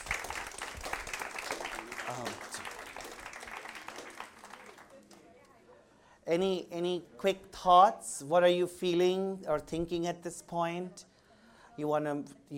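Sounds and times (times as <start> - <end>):
audience round of applause: 0.0 - 5.2
speech: 6.3 - 11.1, 11.8 - 12.4.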